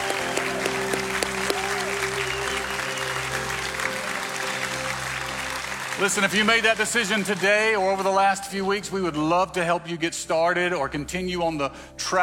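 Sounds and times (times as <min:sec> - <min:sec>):
crowd clapping: 0:00.0 - 0:08.7
speech: 0:06.0 - 0:12.2.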